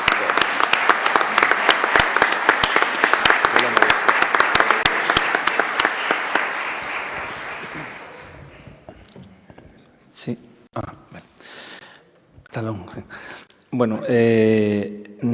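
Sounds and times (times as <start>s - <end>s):
audience applauding the mayor: 0.0s - 9.0s
speech: 12.6s - 15.3s.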